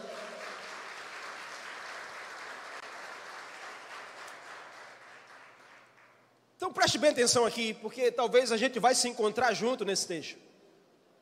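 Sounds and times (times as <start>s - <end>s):
audience applause: 0.0s - 6.2s
speech: 6.6s - 10.5s.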